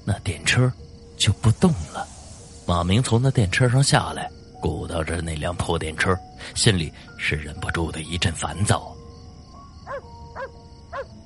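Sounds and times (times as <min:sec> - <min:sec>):
speech: 0:00.1 - 0:02.1, 0:02.7 - 0:09.0
dog barking: 0:09.9 - 0:11.1.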